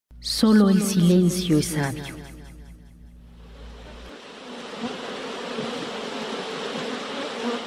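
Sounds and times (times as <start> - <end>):
speech: 0.2 - 2.3
many bees buzzing together: 4.1 - 7.6.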